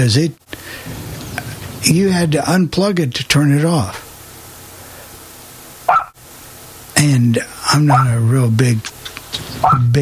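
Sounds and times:
speech: 0.0 - 1.0, 1.8 - 4.0, 7.0 - 8.9, 9.6 - 10.0
small dog barking: 5.9 - 6.2, 9.6 - 9.8.

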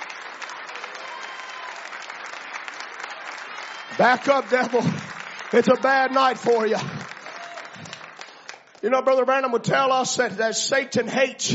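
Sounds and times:
audience clapping in praise: 0.0 - 9.5
speech: 3.9 - 7.0, 8.8 - 11.5.

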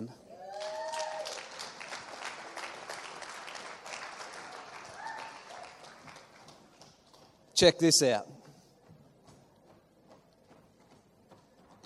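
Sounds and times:
faint whistles and cheers: 0.4 - 1.5, 4.8 - 5.7
audience clapping: 0.5 - 7.5
speech: 7.6 - 8.3.

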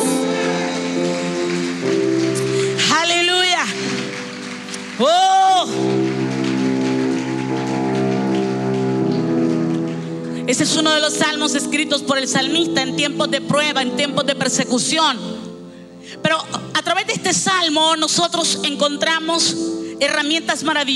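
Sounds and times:
audience clapping hands: 0.0 - 11.3
speech: 11.0 - 15.5, 16.1 - 20.9.

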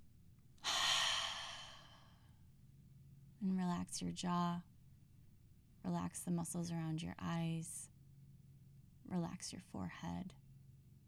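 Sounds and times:
breath taken together during a guided relaxation exercise: 0.6 - 2.0
speech: 3.4 - 4.7, 5.8 - 7.9, 9.1 - 10.4.

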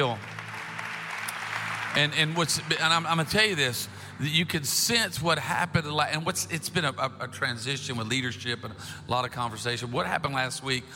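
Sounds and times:
speech: 0.0 - 0.3, 2.0 - 10.9
audience clapping hands: 0.0 - 4.4.

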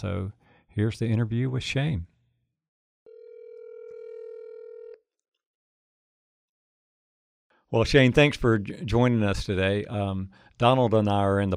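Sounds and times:
speech: 0.0 - 2.1, 7.7 - 11.5
telephone dial tone: 3.1 - 5.0.

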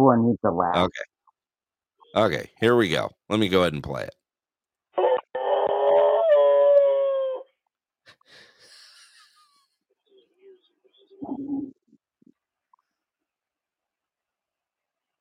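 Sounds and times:
speech: 0.0 - 1.1, 2.1 - 4.2
dog howling: 5.0 - 7.5.

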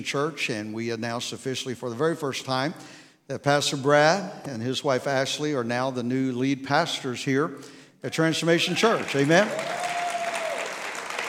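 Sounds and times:
speech: 0.0 - 9.8
audience clapping: 8.8 - 11.2.

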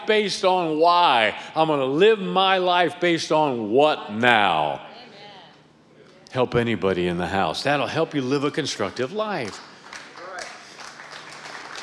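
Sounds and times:
speech: 0.1 - 4.9, 6.3 - 9.7
weak audience hand clapping: 8.8 - 11.8.

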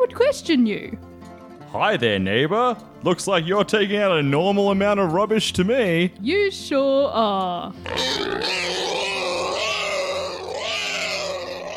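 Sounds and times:
speech: 0.1 - 1.1, 1.7 - 8.8
pig grunting and snorting: 7.8 - 11.7.

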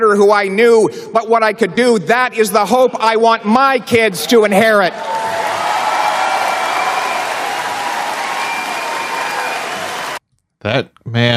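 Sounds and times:
speech: 0.0 - 5.2, 10.6 - 11.3
large audience applause: 4.9 - 10.2.

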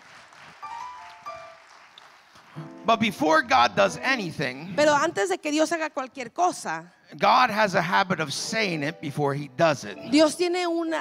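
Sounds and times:
crowd applause: 0.0 - 3.6
speech: 2.6 - 10.9.

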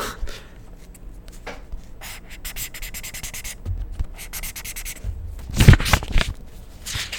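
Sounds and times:
highlighter marker on Bible page: 0.8 - 6.4.

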